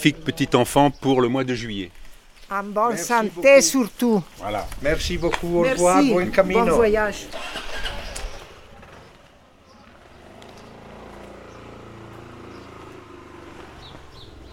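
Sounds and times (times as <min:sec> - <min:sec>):
speech: 0:00.0 - 0:07.9
motorcycle engine starting: 0:06.9 - 0:14.5.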